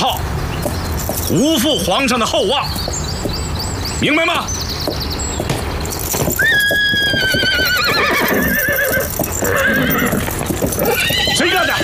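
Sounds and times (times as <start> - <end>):
hooves scuffling and clopping: 0.0 - 11.8
speech: 1.3 - 3.0, 4.0 - 5.2, 9.5 - 11.8
horse neighing: 6.3 - 11.8.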